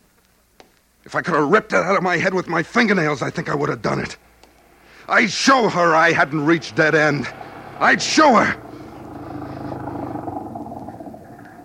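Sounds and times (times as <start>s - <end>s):
speech: 1.0s - 4.3s, 5.1s - 8.6s
old flivver car engine running: 4.7s - 11.6s.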